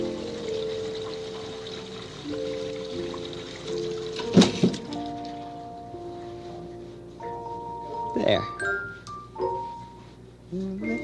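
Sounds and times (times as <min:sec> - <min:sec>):
water splashing as a face is washed: 0:00.0 - 0:05.5
soft steady tones: 0:00.0 - 0:11.0
speech: 0:08.3 - 0:08.7.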